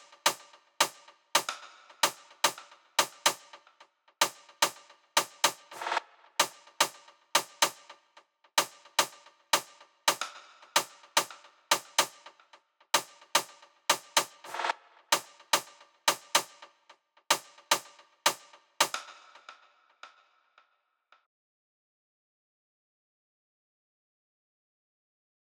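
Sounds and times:
snare drum hits: 0.0s - 3.5s, 4.2s - 7.9s, 8.6s - 12.3s, 13.0s - 16.6s, 17.3s - 19.4s.

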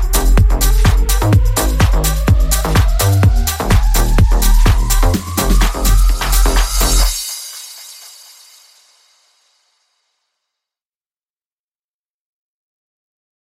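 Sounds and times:
future house music: 0.0s - 9.3s.

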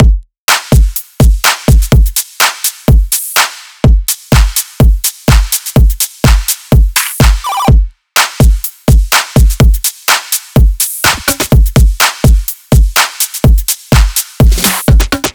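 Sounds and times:
drum beat: 0.0s - 15.3s.

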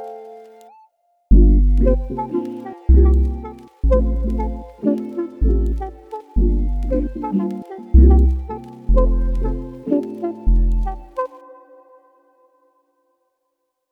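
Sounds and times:
neo soul chopped sample loop in D minor: 1.3s - 11.3s.

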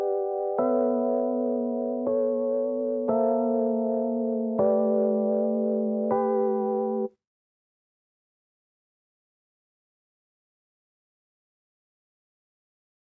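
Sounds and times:
Rhodes electric piano: 0.0s - 7.2s.

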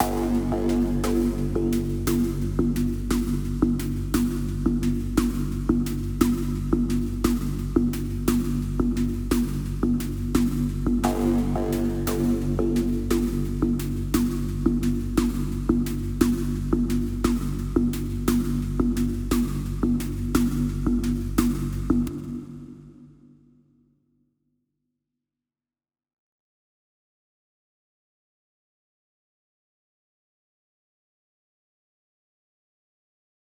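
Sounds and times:
drum and bass sequence: 0.0s - 23.0s.

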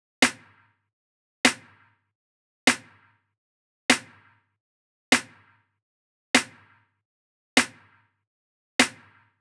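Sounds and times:
snare drum: 0.2s - 0.6s, 1.5s - 1.7s, 2.7s - 3.0s, 3.9s - 4.2s, 5.2s - 5.4s, 6.4s - 6.6s, 7.6s - 7.8s, 8.8s - 9.2s.

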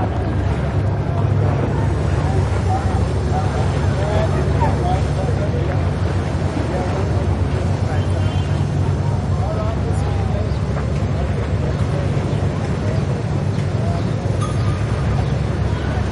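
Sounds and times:
water side: 0.0s - 16.1s.

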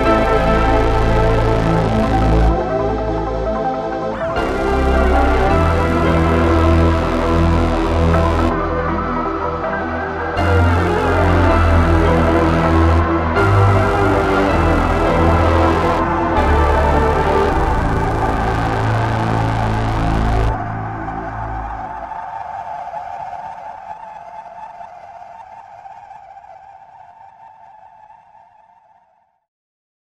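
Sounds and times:
retrowave melodies: 0.0s - 21.9s.

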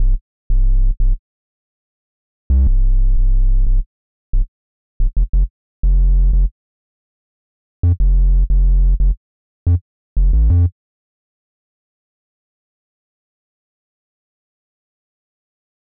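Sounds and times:
bass: 0.0s - 1.2s, 2.5s - 6.6s, 7.8s - 10.8s.

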